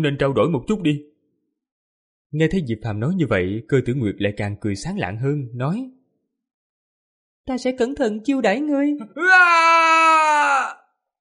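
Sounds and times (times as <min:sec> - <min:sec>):
speech: 0:00.0 - 0:01.1, 0:02.3 - 0:06.0, 0:07.4 - 0:10.8
person screaming in pain: 0:09.2 - 0:10.9.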